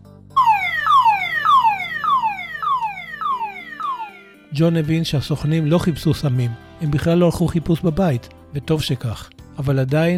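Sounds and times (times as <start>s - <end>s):
police car siren wailing: 0.4s - 4.5s
speech: 4.6s - 10.1s.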